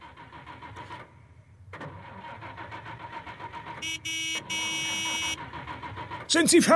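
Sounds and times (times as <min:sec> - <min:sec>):
car engine starting and idling: 0:00.0 - 0:06.7
car horn: 0:03.8 - 0:05.4.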